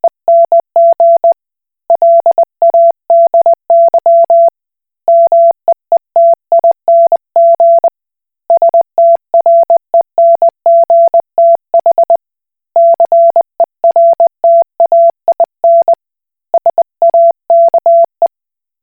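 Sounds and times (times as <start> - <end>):
Koch Morse code beeps: 0.3 - 1.4, 2.0 - 4.5, 5.1 - 5.6, 6.2 - 7.9, 8.5 - 12.2, 12.8 - 16.0, 16.6 - 18.3.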